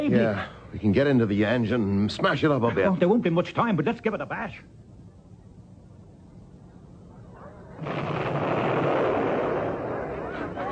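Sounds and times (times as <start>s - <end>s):
speech: 0.1s - 4.8s
distant battle explosions and artillery fire: 7.8s - 10.6s.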